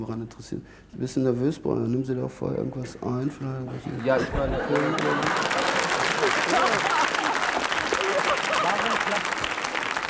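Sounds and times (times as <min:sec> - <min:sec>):
speech: 0:00.0 - 0:05.6
laughter: 0:03.2 - 0:09.8
studio audience applauding: 0:04.7 - 0:10.0.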